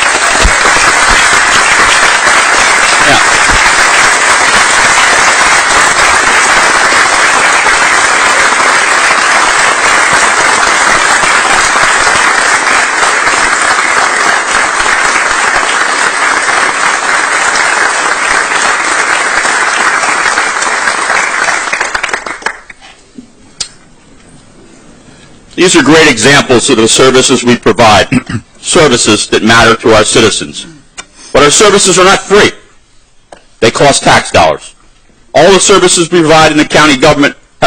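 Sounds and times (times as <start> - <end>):
audience applause: 0.0 - 22.8
speech: 25.6 - 30.8, 31.5 - 32.6, 33.8 - 34.7, 35.5 - 37.4.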